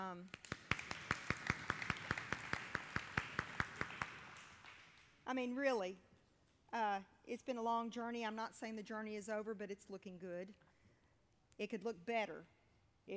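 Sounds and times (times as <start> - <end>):
speech: 0.0 - 0.6, 5.3 - 6.1, 6.7 - 10.7, 11.6 - 13.1
audience applauding: 0.4 - 5.1.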